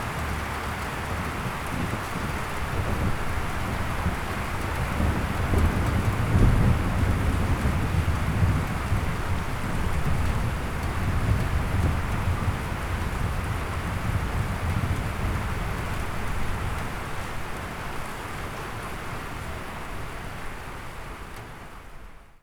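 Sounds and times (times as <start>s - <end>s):
rain: 0.0s - 22.4s
thunder from lightning: 4.9s - 15.6s.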